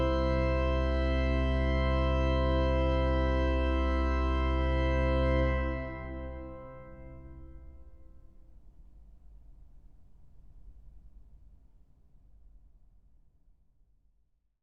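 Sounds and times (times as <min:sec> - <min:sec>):
organ playing a trio in C major: 0:00.0 - 0:07.8.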